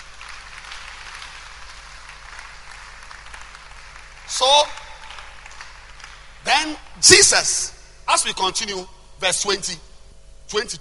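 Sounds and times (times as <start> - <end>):
audience clapping: 0.0 - 6.7
speech: 4.3 - 4.8, 6.5 - 9.9, 10.5 - 10.8.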